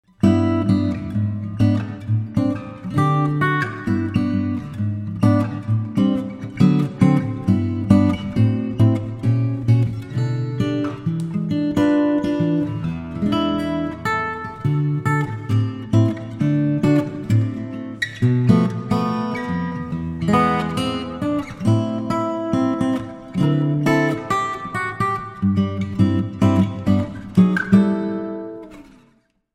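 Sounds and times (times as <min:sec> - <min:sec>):
guitarist playing: 0:00.0 - 0:29.2.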